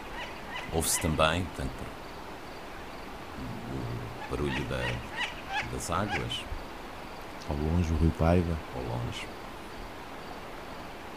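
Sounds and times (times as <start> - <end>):
chorus of frogs croaking: 0.0 - 11.1
speech: 0.7 - 2.0, 3.4 - 6.5, 7.5 - 9.4.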